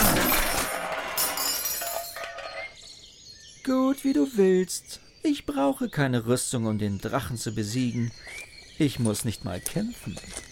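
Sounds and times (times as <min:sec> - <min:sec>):
thrown glass bottle of valerian drops smashing: 0:00.0 - 0:02.6
glass shards tinkling: 0:00.0 - 0:02.8
speech: 0:03.6 - 0:10.5.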